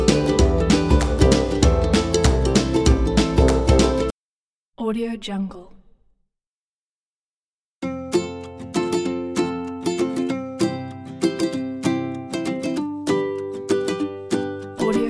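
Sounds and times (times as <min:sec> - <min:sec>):
funny acoustic music: 0:00.0 - 0:04.1, 0:07.8 - 0:15.0.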